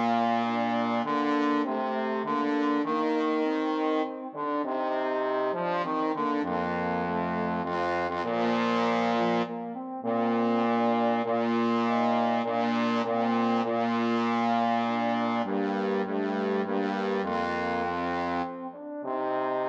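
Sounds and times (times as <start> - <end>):
trombone trio playing: 0.0 - 19.6.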